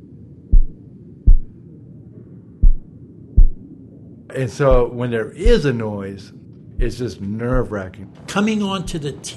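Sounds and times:
low steady hum: 0.0s - 9.3s
heartbeat pounding in deep thumps: 0.5s - 1.6s, 2.6s - 3.7s, 4.7s - 5.7s, 6.7s - 7.8s
speech: 4.3s - 9.3s.

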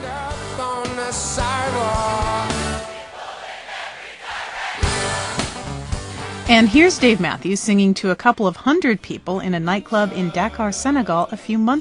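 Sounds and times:
full band playing live before a crowd in Central Park: 0.0s - 3.1s, 4.8s - 7.8s
person singing at a live concert in Central Park: 0.0s - 3.1s
speech: 6.5s - 11.7s.

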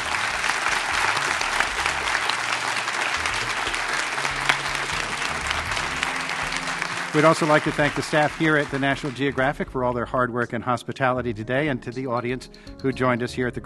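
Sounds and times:
audience applause: 0.0s - 9.5s
speech: 7.1s - 13.6s.

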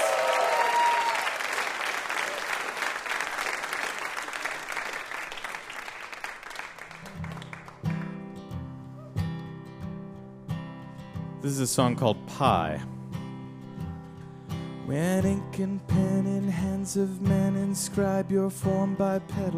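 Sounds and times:
audience applause: 0.0s - 8.2s
speech: 11.4s - 13.0s, 14.9s - 19.5s.

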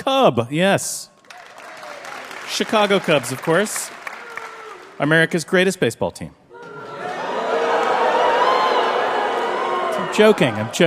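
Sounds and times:
speech: 0.0s - 1.1s, 2.5s - 4.0s, 5.0s - 6.4s, 10.1s - 10.8s
live theater audience cheering and whooping: 1.3s - 5.2s, 6.5s - 10.8s.

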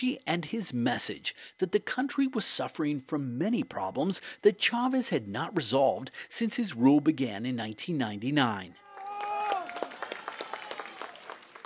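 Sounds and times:
speech: 0.0s - 8.8s
voters clapping as a polling station opens in Caracas: 8.8s - 11.6s.

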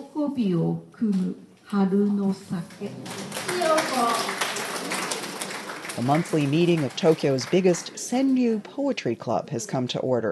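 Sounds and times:
speech: 0.2s - 4.4s, 6.0s - 10.3s
audience applause: 3.0s - 8.3s.

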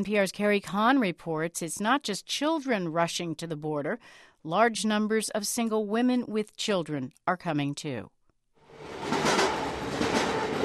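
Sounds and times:
speech: 0.0s - 8.2s
train rumbling on tracks outside Tequixquiac in central Mexico: 8.7s - 10.6s.

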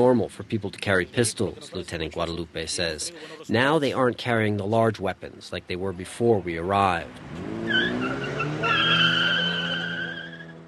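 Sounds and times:
speech: 0.0s - 7.8s
hatchback revving engine: 7.0s - 10.6s
hatchback car tires squealing: 7.1s - 10.6s.

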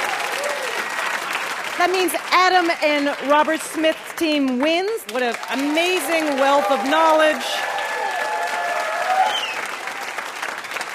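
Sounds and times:
crowd applauding: 0.0s - 10.9s
speech: 1.8s - 7.7s
person whooping: 7.0s - 9.6s.

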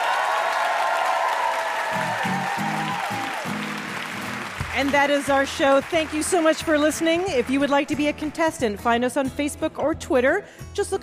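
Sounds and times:
audience applause closing a live quiz show: 0.0s - 8.2s
music: 1.8s - 11.0s
speech: 4.8s - 11.0s.

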